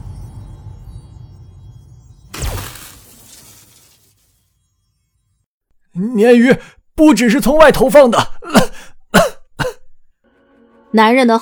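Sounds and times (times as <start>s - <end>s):
speech: 6.0s - 8.6s, 10.9s - 11.4s
breathing: 6.6s - 6.9s, 8.6s - 9.0s
man coughing: 8.2s - 10.0s.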